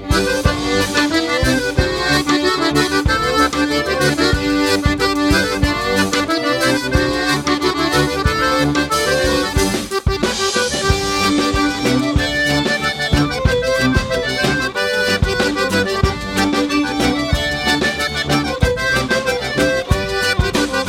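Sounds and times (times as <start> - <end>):
dance music: 0.1 - 20.8.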